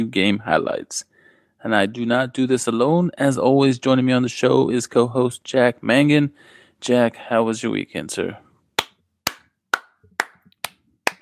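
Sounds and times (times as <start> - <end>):
speech: 0.0 - 8.4
applause, hands clapping: 8.8 - 11.2.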